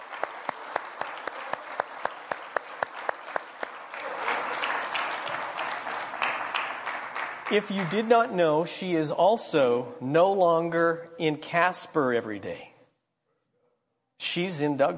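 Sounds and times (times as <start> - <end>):
audience applause: 0.0 - 8.2
speech: 7.5 - 12.7, 14.3 - 14.9.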